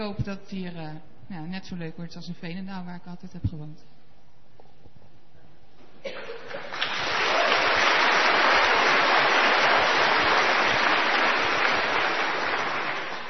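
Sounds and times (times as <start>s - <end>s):
speech: 0.0s - 4.0s
crowd applauding: 6.4s - 13.2s.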